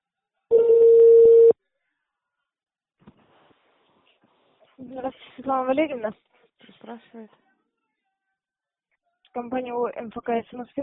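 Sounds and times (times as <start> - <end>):
phone line tones while connecting to operator: 0.5 - 1.6
speech: 4.8 - 7.4, 9.3 - 10.8.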